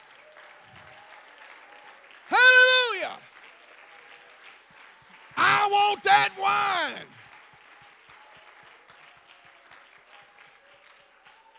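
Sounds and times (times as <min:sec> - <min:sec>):
audience clapping: 0:00.0 - 0:11.5
speech: 0:03.1 - 0:03.3, 0:05.7 - 0:07.2.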